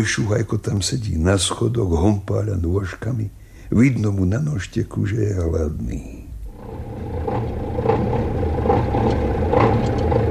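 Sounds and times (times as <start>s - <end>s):
speech: 0.0s - 6.3s
truck engine idling: 6.5s - 10.2s.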